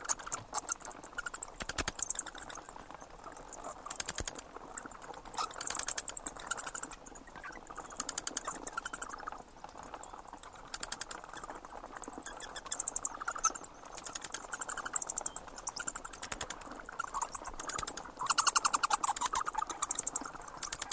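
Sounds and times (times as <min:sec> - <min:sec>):
bats squeaking: 0:00.0 - 0:20.9.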